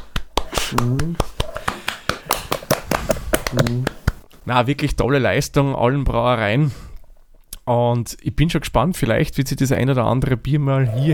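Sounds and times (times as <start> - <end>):
applause: 0.2 - 4.1
speech: 0.7 - 1.3, 3.5 - 6.8, 7.7 - 11.1.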